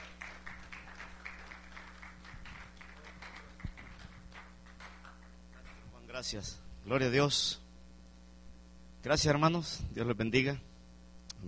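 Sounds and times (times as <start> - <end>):
audience applause: 0.0 - 5.8
low electrical hum: 0.0 - 11.4
speech: 6.2 - 7.6, 9.0 - 10.7.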